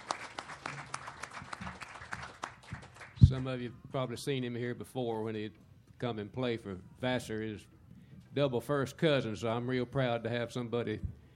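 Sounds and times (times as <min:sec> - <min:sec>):
audience applause welcoming a guitarist: 0:00.0 - 0:03.6
speech: 0:03.3 - 0:07.8, 0:08.4 - 0:11.2.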